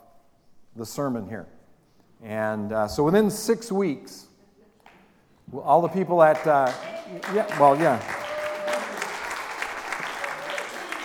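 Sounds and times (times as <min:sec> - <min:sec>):
speech: 0:00.8 - 0:01.6, 0:02.2 - 0:04.3, 0:05.5 - 0:08.2
audience applause: 0:06.2 - 0:11.0.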